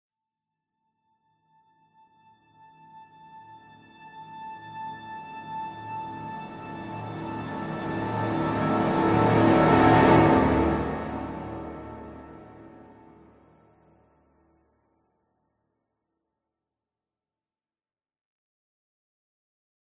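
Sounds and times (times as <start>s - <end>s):
strings: 2.2s - 14.0s
dramatic horns: 6.6s - 14.0s
cinematic orchestral riser: 6.8s - 13.6s.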